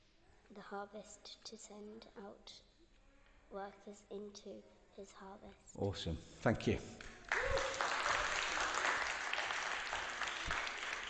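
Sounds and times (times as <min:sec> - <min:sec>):
speech: 0:00.5 - 0:02.7, 0:03.5 - 0:07.6
room full of people applauding: 0:07.0 - 0:11.0.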